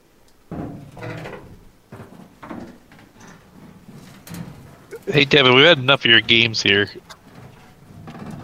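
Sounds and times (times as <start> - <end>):
banging from inside the walls: 0.0 - 8.4
speech: 5.1 - 7.1.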